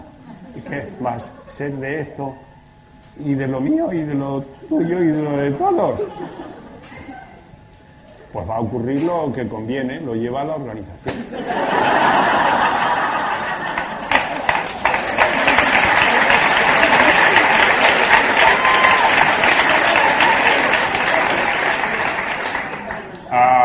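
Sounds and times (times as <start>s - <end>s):
scattered laughter: 0.0s - 1.8s, 5.9s - 7.5s, 11.1s - 14.5s, 15.1s - 18.0s
speech: 0.6s - 2.5s, 3.2s - 6.7s, 8.3s - 12.7s
audience applause: 12.0s - 23.2s.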